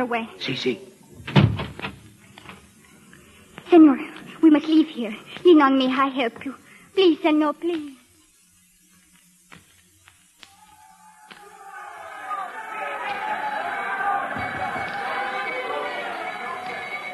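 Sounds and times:
speech: 0:00.0 - 0:01.4, 0:03.7 - 0:08.0
murmur of many voices at a busy bus station: 0:11.1 - 0:17.1.

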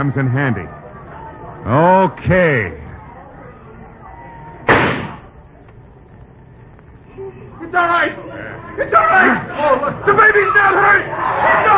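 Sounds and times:
speech: 0:00.0 - 0:00.8, 0:01.6 - 0:02.8, 0:07.7 - 0:11.7
gunshot in a radio drama: 0:04.7 - 0:05.3.

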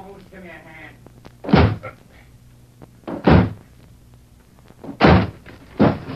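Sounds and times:
speech: 0:00.2 - 0:01.6
door being smashed in: 0:01.5 - 0:01.8, 0:03.1 - 0:03.6, 0:04.8 - 0:06.1.

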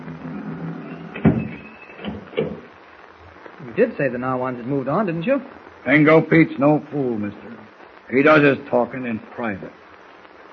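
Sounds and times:
door being closed: 0:00.0 - 0:02.7
speech: 0:03.8 - 0:07.5, 0:08.1 - 0:09.8.

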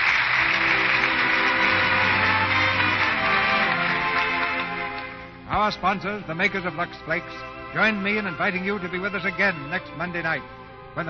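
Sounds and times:
audience applause: 0:00.0 - 0:05.3
faint low musical tone: 0:00.4 - 0:11.0
speech: 0:05.6 - 0:11.0.

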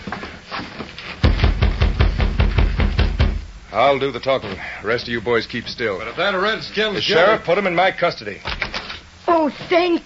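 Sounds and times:
firm knocking on a door: 0:01.2 - 0:03.5
speech: 0:03.8 - 0:08.6, 0:09.3 - 0:10.0.

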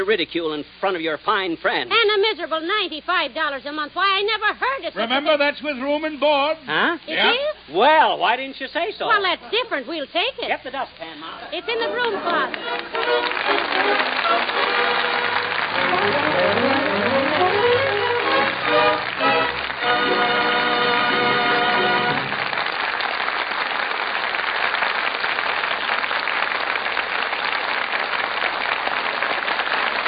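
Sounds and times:
speech: 0:00.0 - 0:15.1, 0:15.8 - 0:16.6
audience applause in the Gulf Theater: 0:11.7 - 0:30.0.

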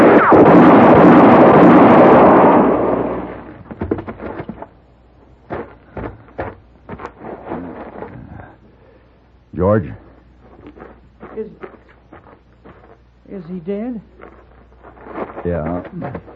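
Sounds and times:
gunshot: 0:00.0 - 0:04.4
speech: 0:09.8 - 0:10.0.

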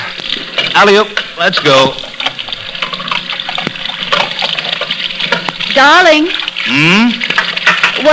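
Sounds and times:
tap water running into a sink while dishes are washed up: 0:00.2 - 0:08.1
speech: 0:00.8 - 0:02.1, 0:05.7 - 0:07.3.

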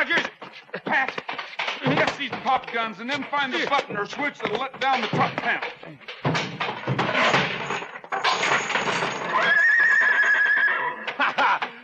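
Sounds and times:
laughter: 0:00.0 - 0:02.3, 0:11.0 - 0:11.8
clattering: 0:00.0 - 0:11.8
speech: 0:00.9 - 0:01.2, 0:01.9 - 0:06.4
horse neighing: 0:09.2 - 0:11.2.

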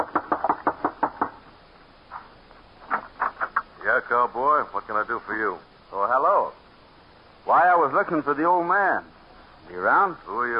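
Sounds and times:
knocking on a wooden front door: 0:00.0 - 0:01.4
speech: 0:04.1 - 0:06.6, 0:07.4 - 0:09.1, 0:09.7 - 0:10.5.

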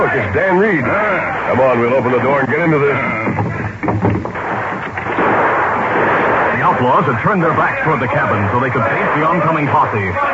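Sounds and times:
speech: 0:00.0 - 0:04.4, 0:06.8 - 0:10.3
gunshots: 0:03.5 - 0:10.3.

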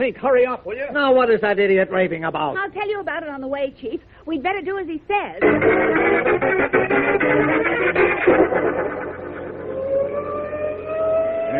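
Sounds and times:
speech: 0:00.0 - 0:09.0
sirens wailing: 0:07.4 - 0:11.5.

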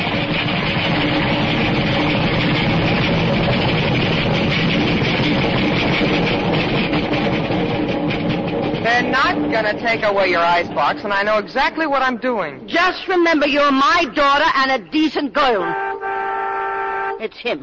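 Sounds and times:
express train passing: 0:00.0 - 0:17.6
speech: 0:09.6 - 0:15.9, 0:17.2 - 0:17.6.

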